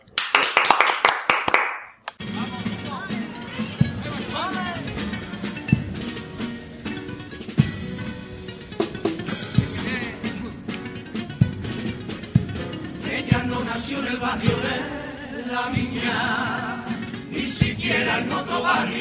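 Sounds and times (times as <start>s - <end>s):
hand claps: 0.0s - 2.2s
crowd chatter and babble: 2.2s - 18.9s.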